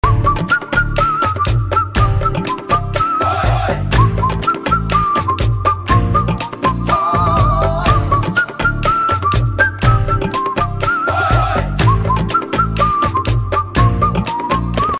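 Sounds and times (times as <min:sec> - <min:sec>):
instrumental flute ringtone: 0:00.0 - 0:14.9.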